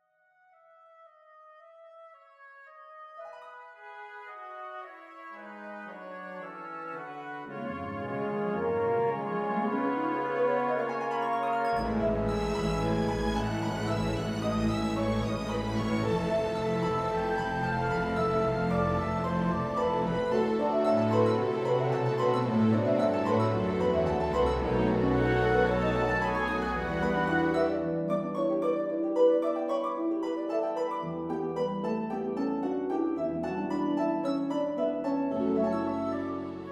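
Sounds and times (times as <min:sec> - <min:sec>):
four harps and orchestra playing a serenade: 0:03.2 - 0:36.6.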